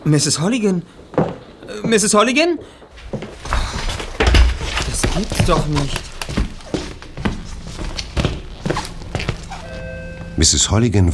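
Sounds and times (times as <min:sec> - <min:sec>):
speech: 0:00.1 - 0:03.2, 0:05.2 - 0:06.1, 0:10.4 - 0:11.1
running footsteps into a stairwell: 0:02.6 - 0:10.5.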